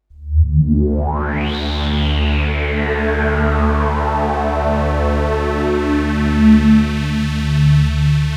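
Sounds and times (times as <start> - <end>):
synth one-shot: 0.3 - 8.2.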